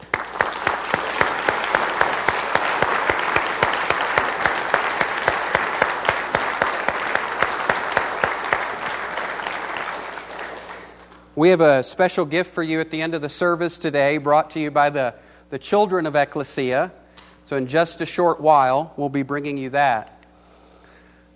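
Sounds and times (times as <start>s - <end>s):
audience applause: 0.0s - 11.2s
speech: 11.4s - 20.1s.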